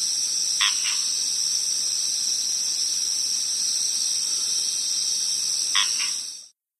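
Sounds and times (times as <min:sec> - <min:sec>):
frog calling: 0:00.5 - 0:01.4, 0:05.0 - 0:06.4.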